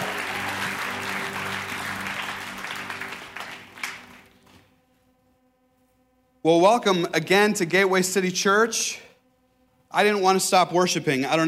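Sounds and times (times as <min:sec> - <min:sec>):
church congregation clapping for the worship team: 0:00.0 - 0:04.7
speech: 0:06.4 - 0:09.0, 0:09.9 - 0:11.4.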